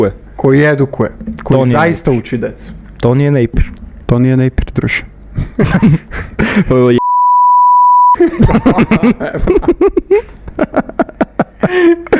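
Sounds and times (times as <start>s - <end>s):
speech: 0.0s - 7.0s, 8.2s - 12.1s
laughter: 5.4s - 6.9s, 8.2s - 12.1s
censor beep: 7.0s - 8.2s.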